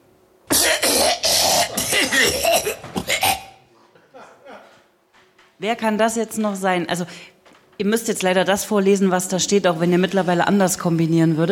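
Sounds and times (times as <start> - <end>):
person coughing: 0.5 - 3.6
laughter: 3.8 - 4.9
speech: 5.6 - 11.5.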